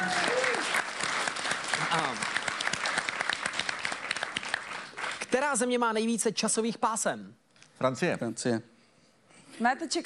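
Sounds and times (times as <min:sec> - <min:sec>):
applause: 0:00.0 - 0:05.9
speech: 0:05.4 - 0:08.7, 0:09.6 - 0:10.0.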